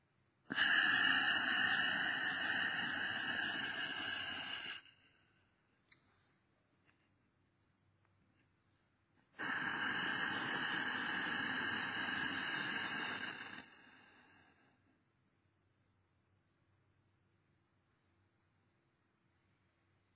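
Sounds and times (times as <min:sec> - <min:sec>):
airy exhalations voiced with a hum chant during guided meditation breathing: 0:00.5 - 0:05.3, 0:09.4 - 0:14.8.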